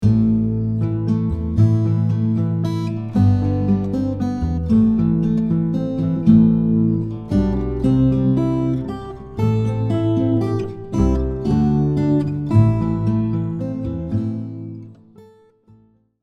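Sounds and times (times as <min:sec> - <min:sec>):
guitar: 0:00.0 - 0:16.2.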